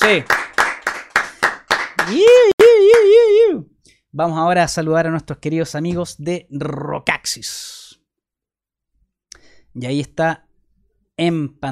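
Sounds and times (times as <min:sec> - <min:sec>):
speech: 0:00.0 - 0:00.4, 0:02.1 - 0:02.5, 0:03.6 - 0:07.8, 0:09.8 - 0:10.5, 0:11.2 - 0:11.6
hands clapping: 0:00.0 - 0:03.2
long wavering vocal whoop: 0:02.0 - 0:03.7.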